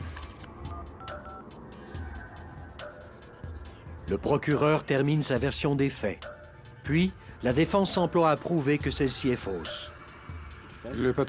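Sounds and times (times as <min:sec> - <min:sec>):
telephone keypad beeps dialing 911: 0:00.7 - 0:01.4
speech: 0:04.1 - 0:06.3, 0:06.9 - 0:09.9, 0:10.8 - 0:11.2.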